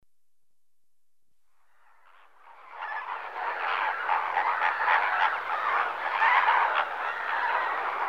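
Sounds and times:
flamingo flock honking in the morning at Lake Nakuru Kenya: 0:02.7 - 0:08.0.

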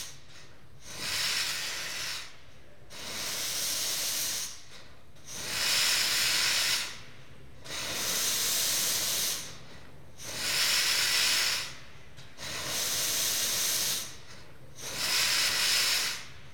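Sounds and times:
static steam engine: 0:00.9 - 0:02.4, 0:03.0 - 0:04.6, 0:05.3 - 0:07.0, 0:07.7 - 0:09.6, 0:10.2 - 0:11.8, 0:12.4 - 0:14.2, 0:14.8 - 0:16.4.

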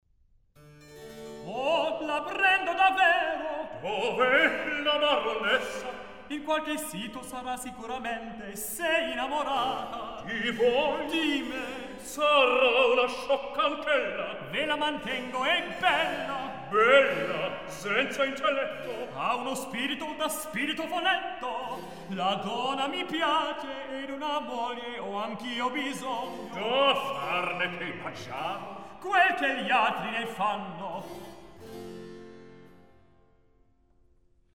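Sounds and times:
recitative singing: 0:01.4 - 0:31.1.

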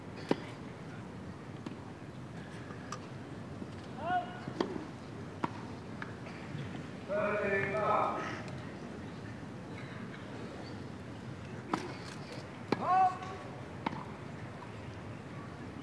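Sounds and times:
tennis playing: 0:01.6 - 0:14.8.

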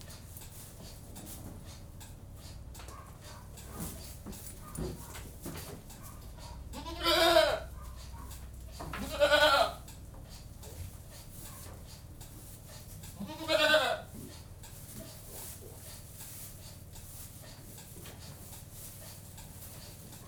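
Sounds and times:
domestic goat bleating in a goat-house: 0:06.6 - 0:07.8, 0:08.9 - 0:09.9, 0:13.1 - 0:14.2.

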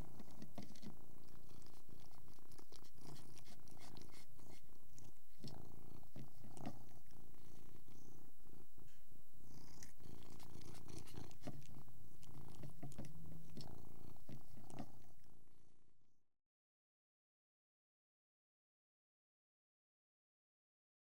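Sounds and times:
cat: 0:00.0 - 0:08.3, 0:09.5 - 0:15.3.

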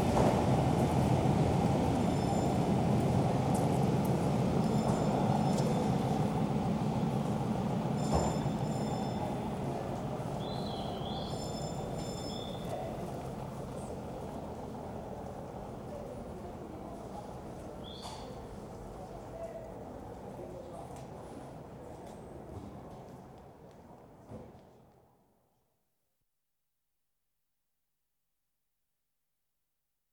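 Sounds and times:
mainline express diesel train: 0:00.0 - 0:17.8.

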